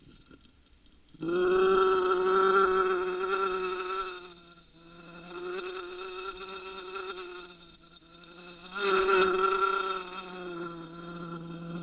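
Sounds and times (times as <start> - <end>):
wasp buzzing: 1.2 - 11.8.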